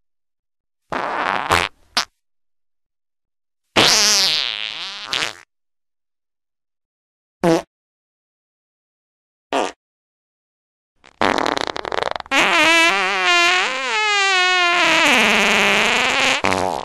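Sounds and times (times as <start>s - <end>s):
loud farts: 0.9s - 2.1s, 3.8s - 5.5s, 7.4s - 7.7s, 9.5s - 9.8s, 11.0s - 16.8s.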